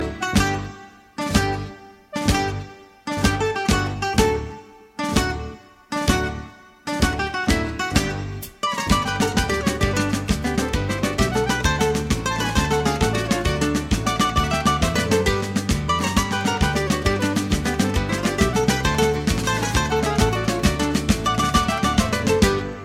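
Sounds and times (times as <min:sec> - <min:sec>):
Mexican folk dance tune: 0:00.0 - 0:22.8.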